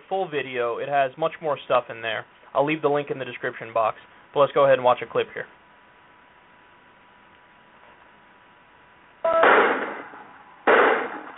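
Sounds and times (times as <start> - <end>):
speech: 0.1 - 5.6
battering ram breaking down a door: 9.4 - 11.3.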